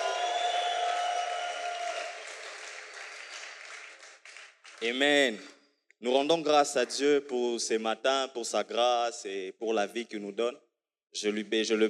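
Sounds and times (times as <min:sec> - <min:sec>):
audience applauding and cheering: 0:00.0 - 0:04.9
speech: 0:04.8 - 0:11.8.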